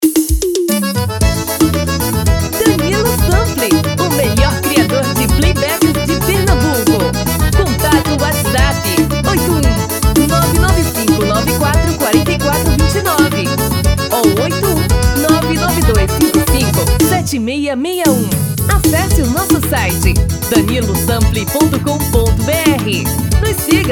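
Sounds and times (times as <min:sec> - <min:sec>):
forró music: 0:00.0 - 0:23.8.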